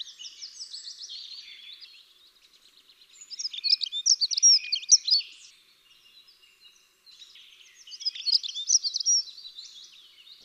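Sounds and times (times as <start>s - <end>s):
dunnock singing: 0.0s - 10.4s.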